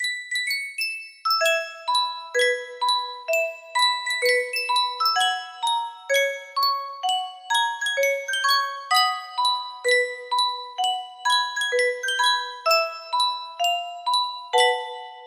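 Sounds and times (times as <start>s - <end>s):
Yunsheng music box melody: 0.0s - 15.2s.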